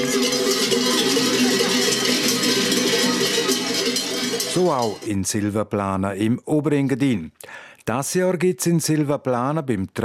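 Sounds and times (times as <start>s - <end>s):
large cowbells clanging at spring custom: 0.0s - 5.4s
speech: 4.6s - 10.0s.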